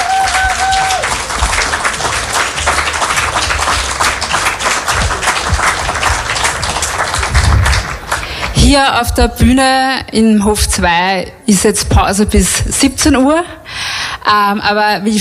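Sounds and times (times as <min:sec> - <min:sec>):
audience applause after a concert: 0:00.0 - 0:08.6
speech: 0:08.8 - 0:15.1.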